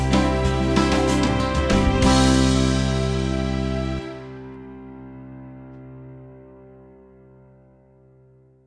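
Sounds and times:
band playing a hymn: 0.0 - 4.5.

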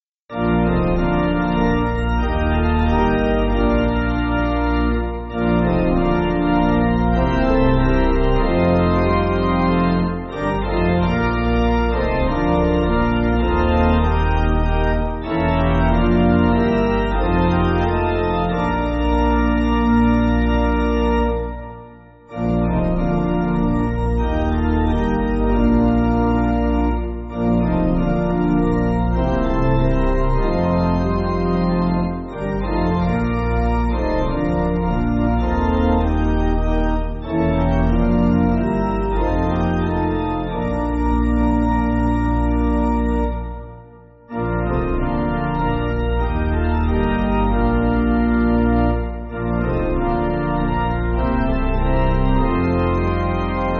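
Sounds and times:
pipe organ church backing music: 0.3 - 53.7.

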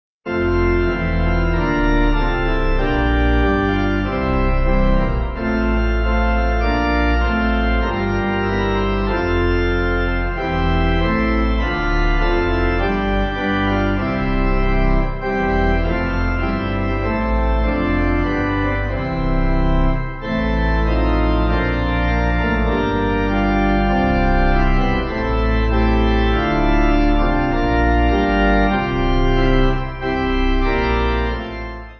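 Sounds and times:
pipe organ hymn backing: 0.3 - 31.9.

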